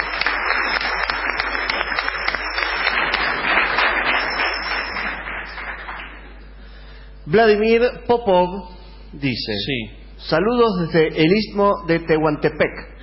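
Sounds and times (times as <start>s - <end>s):
audience applause: 0.0s - 6.3s
speech: 7.3s - 12.9s.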